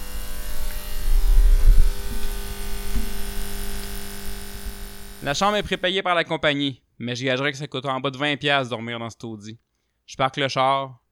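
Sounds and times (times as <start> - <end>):
neon sign crackling bursts and pops: 0.0 - 5.9
neon sign buzzing with a steady electrical hum: 0.0 - 6.0
speech: 5.2 - 11.0.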